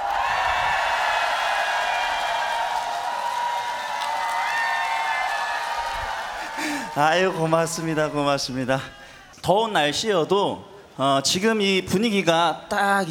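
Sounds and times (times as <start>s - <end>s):
crowd applauding: 0.0s - 8.6s
speech: 7.0s - 13.0s.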